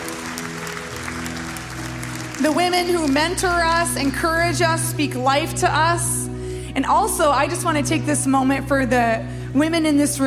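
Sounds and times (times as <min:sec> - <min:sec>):
audience cheering: 0:00.0 - 0:03.2
speech: 0:02.4 - 0:06.2, 0:06.8 - 0:10.2.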